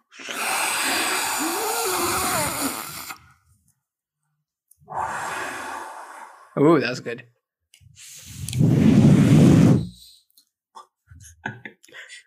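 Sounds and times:
forceful exhale through pursed lips with a whoosh: 0:00.2 - 0:03.2, 0:04.9 - 0:06.6, 0:08.0 - 0:10.1
speech: 0:06.6 - 0:07.4, 0:08.0 - 0:08.2.

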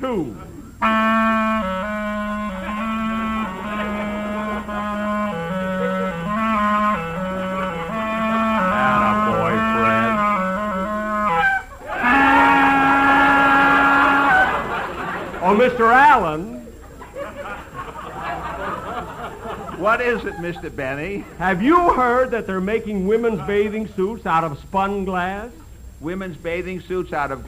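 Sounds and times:
speech: 0:00.0 - 0:01.4, 0:15.7 - 0:16.5, 0:19.8 - 0:27.4
clarinet playing: 0:00.7 - 0:15.2
laughter: 0:02.5 - 0:06.5, 0:07.6 - 0:10.4, 0:11.6 - 0:22.2.

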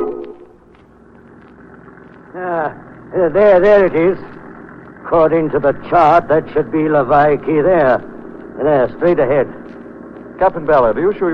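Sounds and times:
water splashing at prow: 0:00.0 - 0:08.6
boat motor droning: 0:00.0 - 0:11.3
speech: 0:02.4 - 0:04.3, 0:05.0 - 0:09.7, 0:10.4 - 0:11.3.

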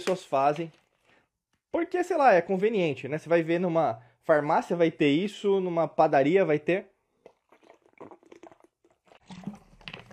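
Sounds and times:
speech: 0:00.0 - 0:00.8, 0:01.7 - 0:06.9
crinkly clicking handling noises: 0:00.0 - 0:01.3
person sipping and swallowing water: 0:07.0 - 0:10.1.

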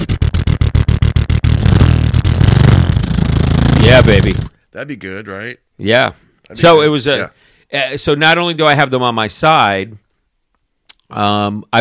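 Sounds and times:
voice imitating a revving motorcycle: 0:00.0 - 0:04.5
speech: 0:03.9 - 0:10.0, 0:11.1 - 0:11.7.

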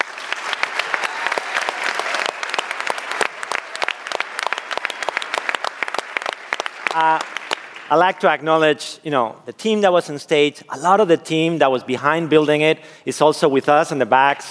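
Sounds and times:
large audience applauding: 0:00.0 - 0:08.0
speech: 0:07.9 - 0:14.4.

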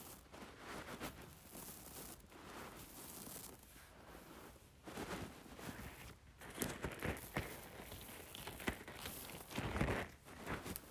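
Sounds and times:
rice shaken and poured: 0:00.0 - 0:03.7, 0:05.8 - 0:10.8.

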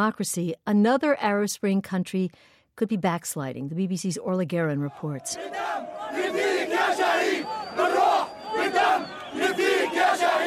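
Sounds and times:
speech: 0:00.0 - 0:07.5
protest crowd chanting: 0:04.8 - 0:10.4.

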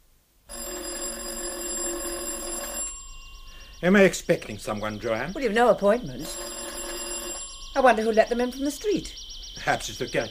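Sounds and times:
doorbell ringing at apartment door: 0:00.5 - 0:04.1, 0:06.1 - 0:08.6
speech: 0:03.8 - 0:06.6, 0:07.8 - 0:10.2.

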